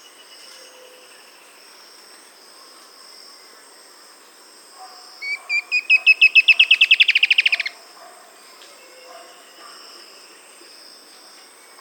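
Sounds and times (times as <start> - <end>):
bird trilling short whistled notes: 5.2 - 7.7.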